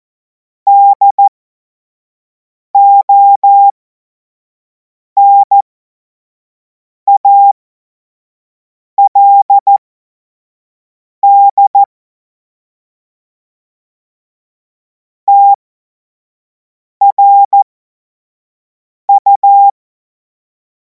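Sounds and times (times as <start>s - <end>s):
CW Morse code beeps: 0.7s - 1.3s, 2.8s - 3.7s, 5.2s - 5.6s, 7.1s - 7.6s, 9.0s - 9.8s, 11.2s - 11.9s, 15.3s - 15.6s, 17.0s - 17.6s, 19.1s - 19.7s.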